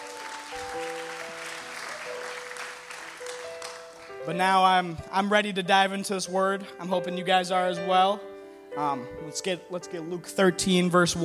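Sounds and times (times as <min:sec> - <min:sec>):
crowd clapping: 0:00.0 - 0:04.7
speech: 0:04.2 - 0:11.2.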